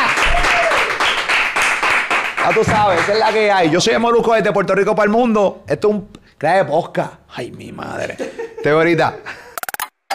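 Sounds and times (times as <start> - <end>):
applause: 0.0 - 3.7
speech: 2.5 - 9.4.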